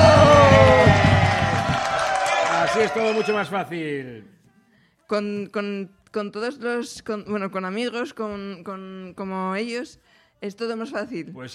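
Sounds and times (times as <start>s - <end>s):
applause and cheering: 0.0s - 3.6s
speech: 3.1s - 4.4s, 5.1s - 11.5s.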